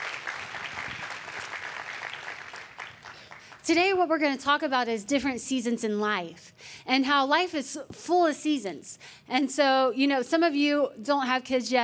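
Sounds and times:
audience applauding: 0.0 - 3.6
speech: 3.7 - 11.8.

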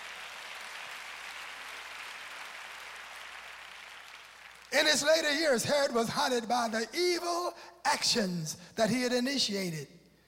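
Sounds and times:
audience clapping hands: 0.0 - 5.3
speech: 4.7 - 10.0.

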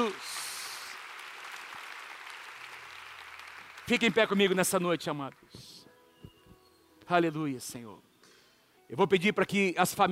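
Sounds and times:
speech: 0.0 - 0.4, 3.9 - 5.8, 7.1 - 8.1, 8.9 - 10.1
audience applause: 0.0 - 5.0.

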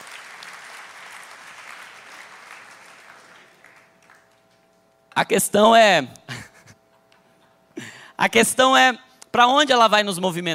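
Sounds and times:
audience applause: 0.0 - 4.4
speech: 5.2 - 6.2, 8.2 - 10.5
laughter: 6.3 - 6.9.

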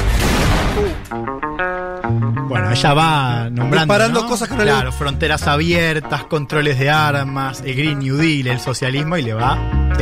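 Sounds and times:
explosion-like blast from a political campaign video: 0.0 - 1.1
speech: 0.9 - 1.4, 2.8 - 10.0.

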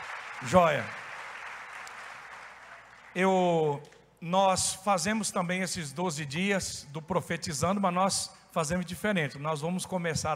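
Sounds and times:
audience applause: 0.0 - 3.3
speech: 0.4 - 1.0, 3.2 - 10.3.

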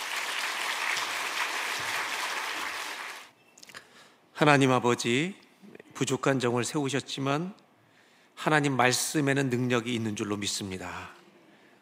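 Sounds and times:
audience clapping to welcome a speaker: 0.0 - 3.3
speech: 4.4 - 5.4, 6.0 - 7.6, 8.4 - 11.2.

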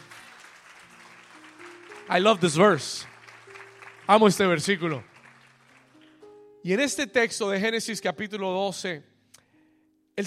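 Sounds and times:
audience applause: 0.0 - 6.2
speech: 2.1 - 3.1, 4.1 - 5.1, 6.6 - 9.1.

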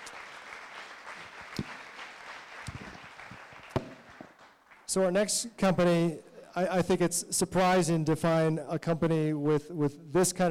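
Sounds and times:
audience applause: 0.0 - 4.9
speech: 4.9 - 10.4.

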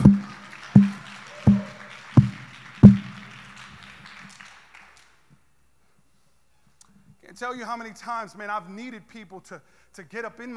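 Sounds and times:
one person clapping: 0.0 - 5.2
speech: 7.4 - 10.5.

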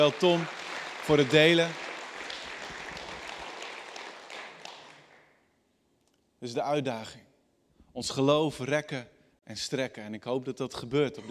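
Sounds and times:
speech: 0.0 - 1.8, 6.4 - 7.3, 8.0 - 11.3
audience applause: 0.0 - 5.2.

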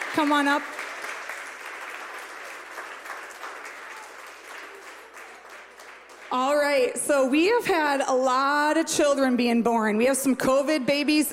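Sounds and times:
audience applause: 0.0 - 6.7
speech: 0.2 - 0.8, 6.3 - 11.3.

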